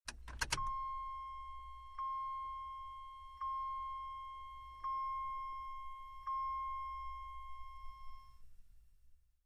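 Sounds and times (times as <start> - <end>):
Jeep Wagoneer electric seatbelt chime: 0.5 - 8.4.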